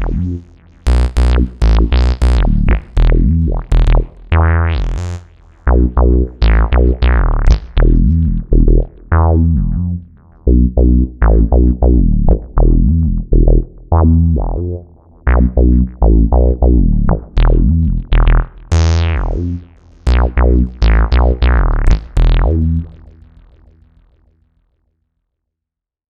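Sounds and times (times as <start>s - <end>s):
Ensoniq Fizmo synthesizer bassline: 0.0s - 23.8s.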